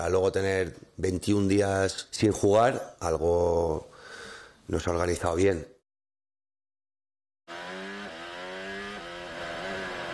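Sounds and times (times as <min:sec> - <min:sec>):
speech: 0:00.0 - 0:03.9, 0:04.7 - 0:05.7
Formula 1 car engines roaring: 0:07.5 - 0:10.1.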